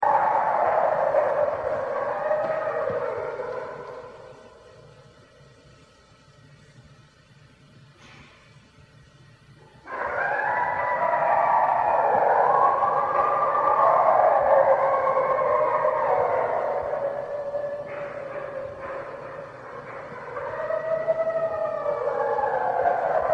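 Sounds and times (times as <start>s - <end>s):
red wolf howling: 0.0s - 4.9s, 9.9s - 23.3s.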